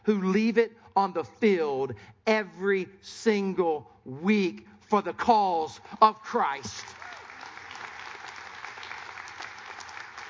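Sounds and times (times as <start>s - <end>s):
speech: 0.0s - 7.0s
audience applause, clapping: 6.7s - 10.2s.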